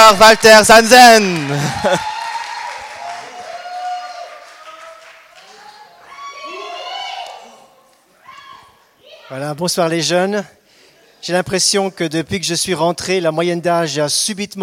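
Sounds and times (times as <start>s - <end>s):
audience applause welcoming a speaker: 0.0s - 7.3s
speech: 0.1s - 2.2s, 9.3s - 10.6s, 11.2s - 14.6s
people cheering and whooping: 1.1s - 8.8s
laughter: 1.4s - 2.2s.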